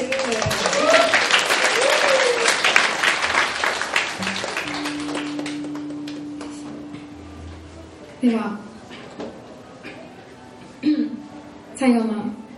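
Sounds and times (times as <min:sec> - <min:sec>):
audience applause: 0:00.0 - 0:06.8
speech: 0:08.2 - 0:08.7, 0:11.8 - 0:12.3.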